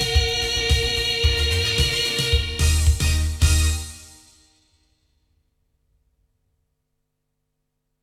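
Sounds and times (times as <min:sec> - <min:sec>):
loudspeaker playback recorded with Oktava MKL-5000 cardioid: 0:00.0 - 0:04.0.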